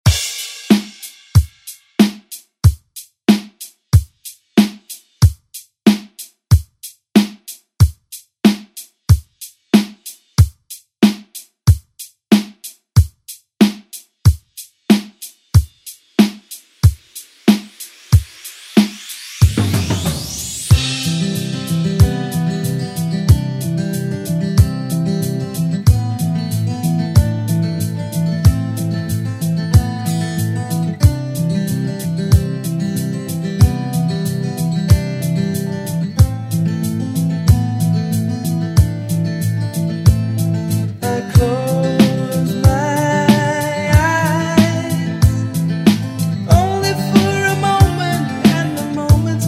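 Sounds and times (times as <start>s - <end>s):
70s drum beat: 0.0s - 49.4s.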